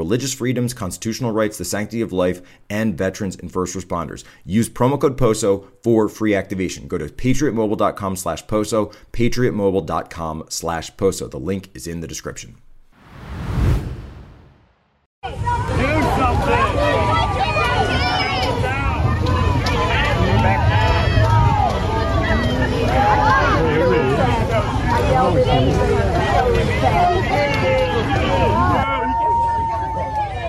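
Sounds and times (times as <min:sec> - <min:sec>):
speech: 0:00.0 - 0:12.7
brief whoosh: 0:13.0 - 0:15.1
large crowd booing and shouting: 0:15.2 - 0:30.4.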